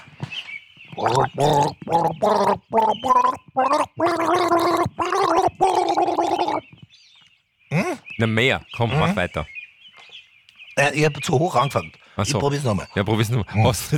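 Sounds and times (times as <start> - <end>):
speech: 1.0 - 6.6, 7.7 - 9.6, 10.8 - 13.9
person gargling a tune with flower water: 1.0 - 6.7.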